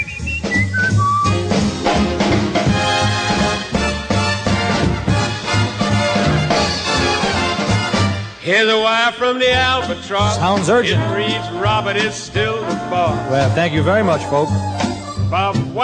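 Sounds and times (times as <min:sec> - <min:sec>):
man whistling a warbling birdlike tune: 0:00.0 - 0:01.5
loud full band accompaniment: 0:00.0 - 0:15.8
speech: 0:08.5 - 0:15.8.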